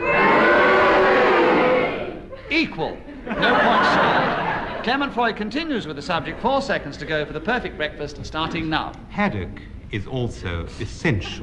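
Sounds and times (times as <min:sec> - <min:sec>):
studio audience at a panel game cheering and booing: 0:00.0 - 0:02.3
laughter: 0:02.2 - 0:08.8, 0:10.8 - 0:11.4
speech: 0:02.5 - 0:04.2, 0:04.8 - 0:11.4.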